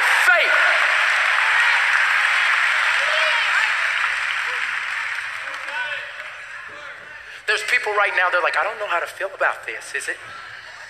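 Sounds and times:
church congregation applauding and cheering: 0:00.0 - 0:06.7
speech: 0:07.8 - 0:10.8.

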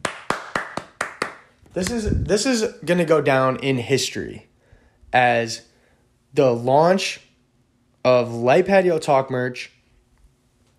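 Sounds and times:
hosts clapping hands: 0:00.0 - 0:02.1
speech: 0:01.8 - 0:04.5, 0:05.1 - 0:05.7, 0:06.3 - 0:07.3, 0:08.0 - 0:09.8.

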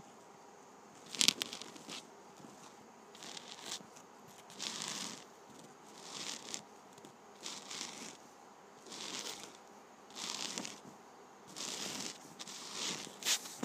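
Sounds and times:
penny's ridged edge rubbed in scratchy strokes: 0:01.0 - 0:02.0, 0:03.1 - 0:03.8, 0:04.4 - 0:06.6, 0:07.4 - 0:08.2, 0:08.8 - 0:10.8, 0:11.5 - 0:13.2.

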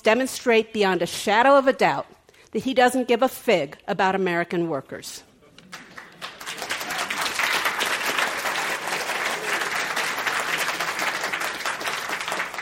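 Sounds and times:
speech: 0:00.0 - 0:05.8
large audience applause: 0:05.7 - 0:12.6.

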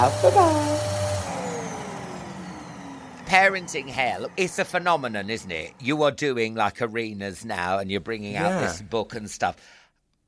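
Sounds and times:
speech: 0:00.0 - 0:01.0, 0:03.3 - 0:10.2
vacuum cleaner hoovering: 0:00.0 - 0:06.2.

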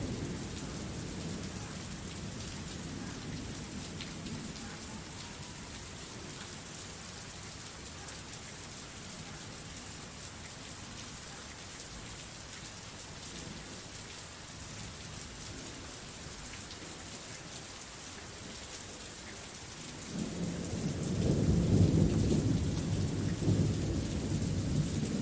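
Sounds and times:
gentle rain: 0:00.0 - 0:25.2
rolling thunder: 0:20.2 - 0:25.2.

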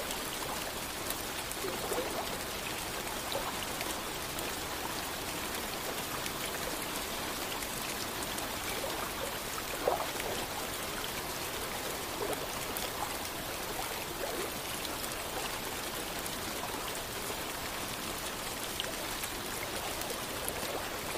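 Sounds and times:
sharper splash: 0:00.0 - 0:04.0, 0:08.0 - 0:15.0
gentle rain falling over lake water: 0:00.0 - 0:21.1.

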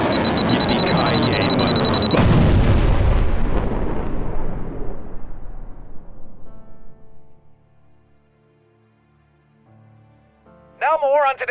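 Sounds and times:
high-pitched alarm tone: 0:00.0 - 0:02.4
bomb explosion sound effect: 0:00.0 - 0:07.8.

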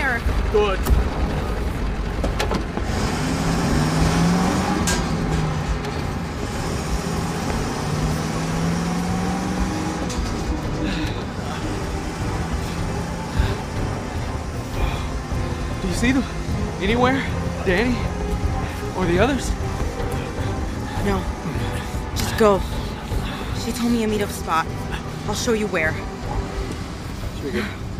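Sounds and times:
manual-transmission car driving off: 0:00.0 - 0:27.9
speech: 0:00.5 - 0:01.1, 0:16.9 - 0:18.1, 0:19.1 - 0:19.6, 0:22.4 - 0:22.8, 0:23.6 - 0:26.1, 0:27.5 - 0:27.8.

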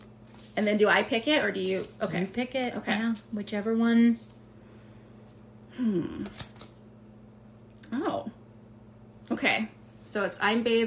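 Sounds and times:
affirmation card deck being shuffled: 0:00.0 - 0:03.4, 0:06.2 - 0:06.8
speech: 0:00.6 - 0:04.3, 0:05.8 - 0:06.5, 0:07.9 - 0:08.4, 0:09.4 - 0:10.8.

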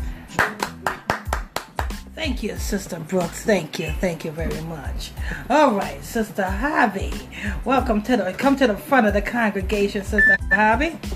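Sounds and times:
hand claps: 0:00.3 - 0:02.1
speech: 0:02.2 - 0:11.1.

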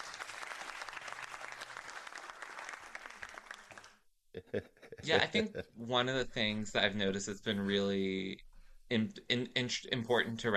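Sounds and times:
applause: 0:00.0 - 0:04.0
laughter: 0:04.4 - 0:05.8
speech: 0:04.4 - 0:10.5.

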